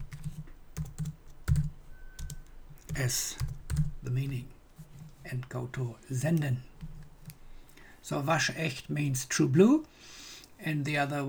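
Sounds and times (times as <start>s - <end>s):
fingers typing on a computer keyboard: 0.0s - 5.2s, 6.2s - 7.8s
speech: 3.0s - 3.5s, 4.1s - 4.6s, 5.3s - 6.7s, 8.1s - 11.2s.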